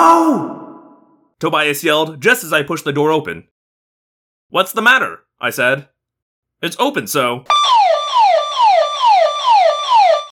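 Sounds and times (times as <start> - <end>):
speech: 1.4 - 3.6, 4.5 - 5.9, 6.6 - 7.7
burglar alarm ringing: 7.5 - 10.3.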